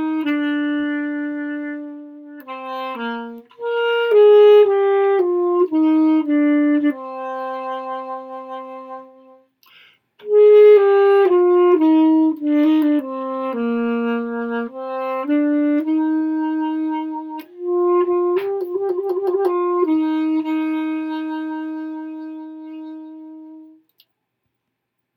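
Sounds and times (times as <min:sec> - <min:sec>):
alto saxophone playing a saraband: 0:00.0 - 0:23.9.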